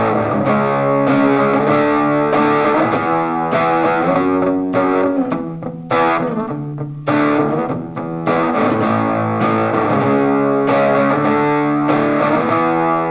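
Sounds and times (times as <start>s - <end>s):
distortion: 0.0s - 13.0s.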